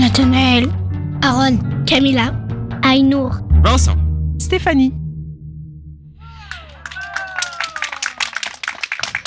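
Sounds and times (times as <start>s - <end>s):
speech: 0.2s - 5.0s
audience applause for schoolchildren: 6.3s - 9.2s.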